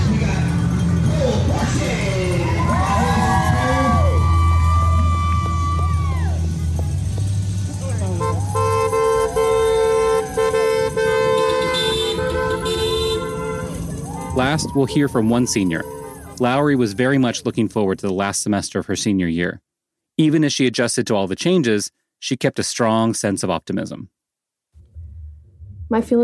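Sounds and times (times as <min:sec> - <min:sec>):
crowd cheering and talking: 0:00.0 - 0:18.0
car horns honking as graduating seniors parade through the neighborhood: 0:06.4 - 0:17.9
speech: 0:14.5 - 0:19.6, 0:20.2 - 0:24.1, 0:25.9 - 0:26.2.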